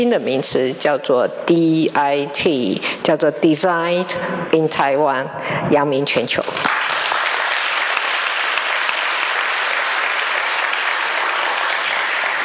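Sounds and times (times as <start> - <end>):
speech: 0.0 - 7.0
audience applause: 6.6 - 12.4.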